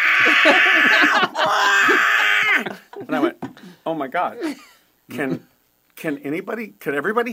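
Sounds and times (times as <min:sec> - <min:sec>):
voice imitating a baby screaming: 0:00.0 - 0:02.7
laughter: 0:00.0 - 0:03.4
speech: 0:00.2 - 0:01.3, 0:03.0 - 0:07.3.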